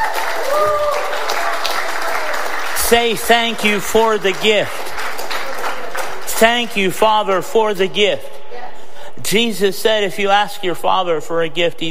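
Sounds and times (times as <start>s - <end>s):
audience clapping: 0.0s - 7.1s
speech: 2.9s - 4.8s, 6.4s - 8.3s, 9.2s - 11.8s.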